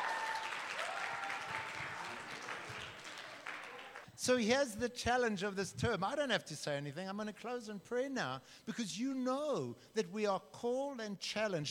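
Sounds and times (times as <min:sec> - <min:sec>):
audience applause: 0:00.0 - 0:04.0
speech: 0:04.2 - 0:11.7.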